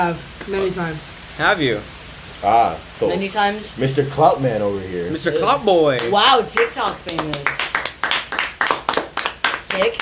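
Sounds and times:
speech: 0.0 - 7.7, 9.8 - 10.0
people clapping: 5.9 - 10.0.

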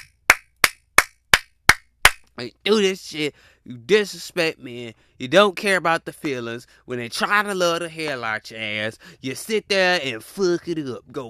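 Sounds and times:
hand claps: 0.0 - 2.3
speech: 2.4 - 11.2.

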